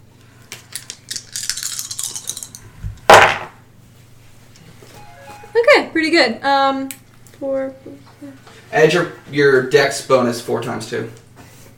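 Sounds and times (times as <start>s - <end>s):
dice being rolled: 0.8s - 3.5s
speech: 6.0s - 11.2s.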